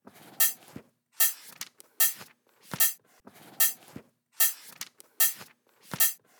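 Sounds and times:
dubstep drum loop cymbals: 0.4 - 0.6, 1.2 - 2.2, 2.8 - 3.0, 4.4 - 5.4, 6.0 - 6.2.

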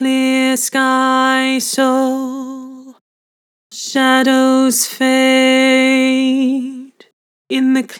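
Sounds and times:
person singing with vibrato: 0.0 - 3.0, 3.7 - 7.9.

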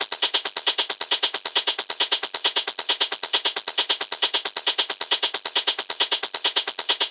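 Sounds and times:
techno hi-hat loop at 135 BPM: 0.0 - 7.0.

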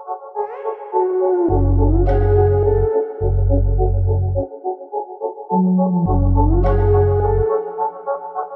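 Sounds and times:
trap melodies in F sharp minor: 0.5 - 4.5, 5.5 - 8.3.

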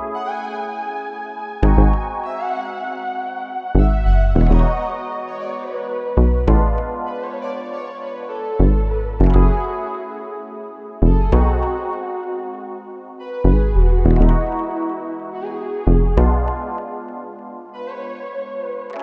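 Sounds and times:
vintage RnB melody in C sharp minor: 1.6 - 2.2, 3.8 - 5.0, 6.2 - 7.0, 8.6 - 9.8, 11.0 - 11.9, 13.5 - 14.7, 15.9 - 16.8.

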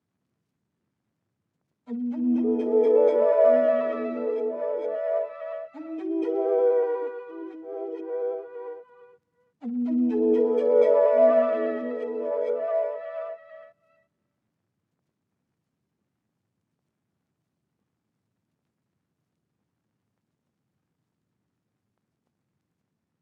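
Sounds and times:
counter melody in E minor: 1.9 - 8.8, 9.6 - 13.4.

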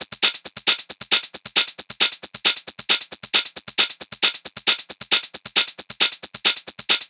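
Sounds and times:
techno hi-hat loop at 135 BPM: 0.0 - 7.0.

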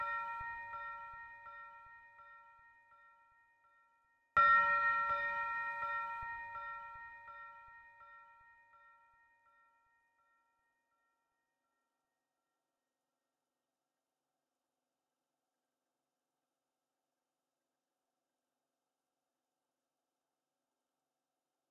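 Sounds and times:
bell FX melody loop at 165 BPM in A sharp minor: 0.0 - 2.0, 4.4 - 8.2.

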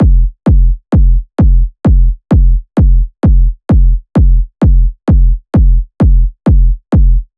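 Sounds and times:
techno kick drum loop at 130 BPM: 0.0 - 7.3.

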